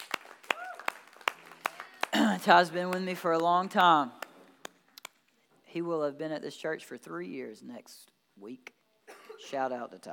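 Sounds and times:
audience clapping: 0.0 - 5.2
speech: 2.4 - 4.2, 5.7 - 8.8, 9.4 - 10.1.

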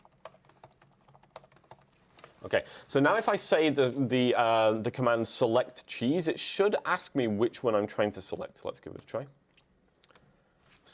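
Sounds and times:
keystrokes on a computer keyboard: 0.0 - 2.0
speech: 2.4 - 9.4.

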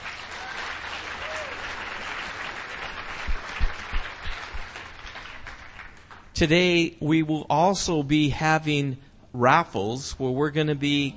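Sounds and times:
audience applause: 0.0 - 6.3
speech: 6.4 - 11.1.

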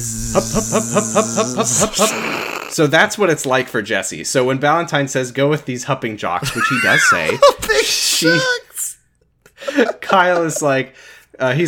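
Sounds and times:
voice imitating bee buzzing: 0.0 - 2.8
speech: 0.0 - 8.6, 9.8 - 11.6
laughter: 6.4 - 8.5, 9.5 - 10.9.

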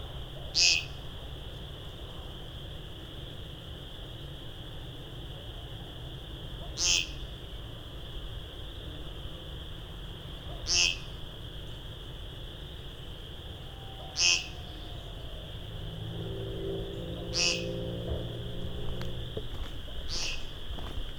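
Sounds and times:
thousands of chorus frogs buzzing drone: 0.0 - 21.1
louder sharper chorus frog trills: 0.5 - 1.1, 6.6 - 7.4, 10.4 - 11.4, 13.8 - 15.3, 16.2 - 18.5, 19.9 - 20.7
low humming rumble: 14.6 - 21.1.

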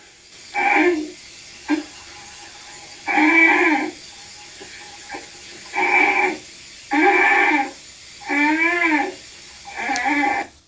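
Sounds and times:
bear cub honking for its mother: 3.1 - 3.9, 5.7 - 10.5.

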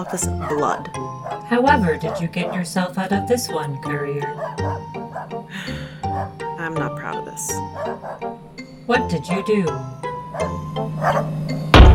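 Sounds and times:
dog barking: 0.0 - 2.8, 4.3 - 5.4, 6.1 - 6.4, 7.7 - 8.3, 10.3 - 11.4
speech: 0.0 - 11.7.

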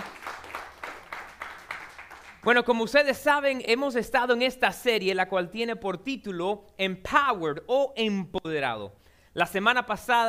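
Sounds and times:
applause from audience: 0.0 - 2.4
speech: 2.4 - 10.2.

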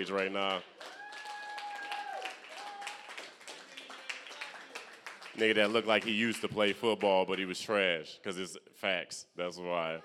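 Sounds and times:
speech: 0.0 - 1.0, 5.4 - 10.0
audience clapping hands: 0.0 - 7.6.

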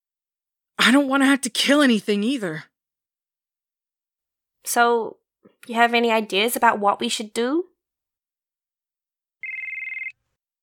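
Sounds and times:
speech: 0.8 - 2.7, 4.6 - 7.7
phone ringing with incoming call: 9.4 - 10.2.

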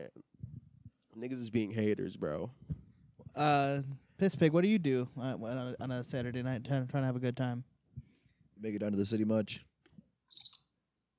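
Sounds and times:
speech: 1.2 - 2.7, 3.4 - 7.7, 8.6 - 9.7
cricket chirping: 10.3 - 10.8.

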